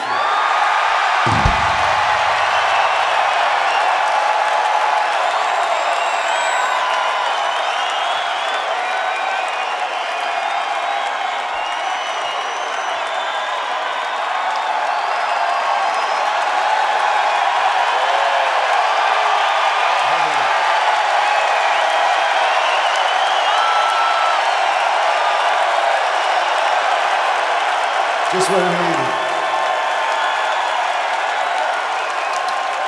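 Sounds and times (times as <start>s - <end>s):
large live audience cheering and applauding: 0.0s - 32.8s
low thump: 1.3s - 2.8s
whoops and whistles: 5.8s - 13.7s, 21.6s - 24.4s.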